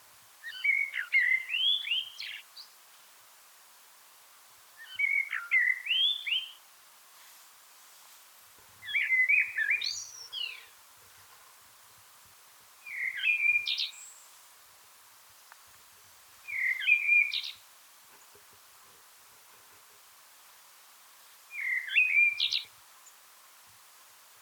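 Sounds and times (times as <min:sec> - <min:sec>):
Eurasian blackbird singing: 0:00.4 - 0:02.4, 0:04.8 - 0:06.6, 0:08.8 - 0:10.7, 0:12.8 - 0:14.2, 0:16.5 - 0:17.6, 0:21.5 - 0:22.7.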